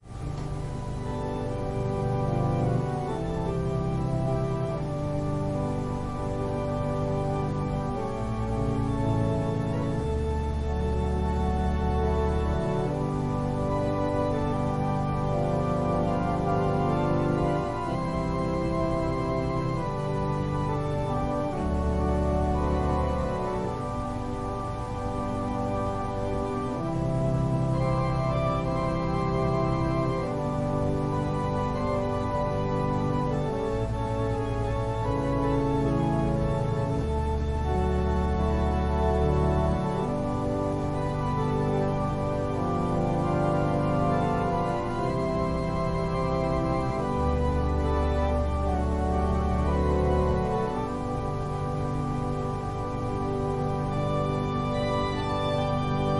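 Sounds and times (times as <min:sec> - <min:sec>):
organ prelude: 0:00.0 - 0:56.1.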